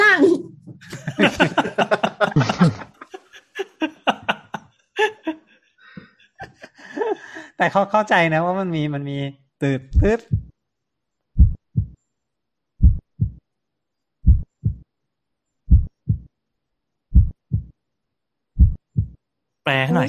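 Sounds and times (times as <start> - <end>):
laughter: 0.8 - 7.6
speech: 1.2 - 2.1, 7.6 - 10.4
steady heartbeat with normal first and second heart sounds: 9.9 - 10.5, 11.4 - 12.0, 12.8 - 13.4, 14.2 - 14.8, 15.7 - 16.3, 17.1 - 17.7, 18.6 - 19.2.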